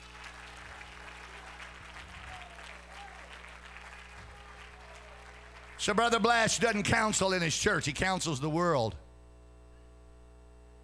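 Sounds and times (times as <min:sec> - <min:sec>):
audience clapping hands: 0:00.0 - 0:07.3
speech: 0:05.8 - 0:09.0.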